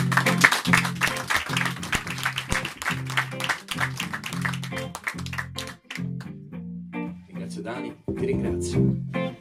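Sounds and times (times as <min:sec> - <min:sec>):
concert audience clapping: 0:00.0 - 0:06.3
speech: 0:07.7 - 0:09.1
music with pulsing low chordal line: 0:08.1 - 0:09.2.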